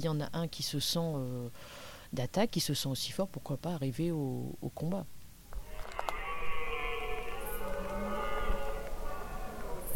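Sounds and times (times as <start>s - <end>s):
speech: 0.0s - 5.2s
red deer roaring: 5.6s - 9.9s.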